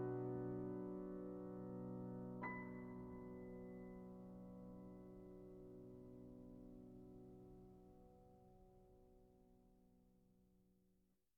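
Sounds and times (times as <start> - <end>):
piano etude: 0.0 - 8.2.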